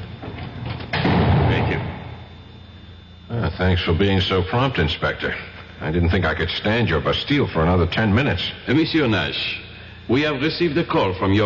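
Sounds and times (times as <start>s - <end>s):
cell door slamming shut: 0.7s - 2.2s
speech: 3.6s - 11.4s.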